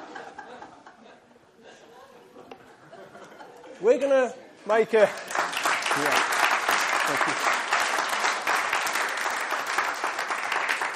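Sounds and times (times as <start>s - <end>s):
laughter: 0.0s - 3.8s, 6.9s - 7.7s
speech: 3.8s - 5.3s, 6.0s - 6.3s, 7.1s - 7.6s
audience applauding: 5.0s - 10.9s.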